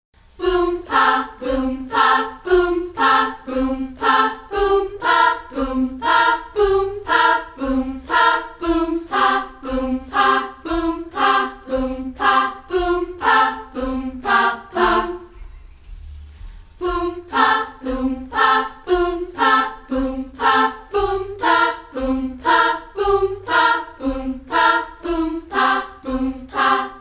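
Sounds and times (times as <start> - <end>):
a cappella singing: 0.2 - 15.8, 16.4 - 26.9.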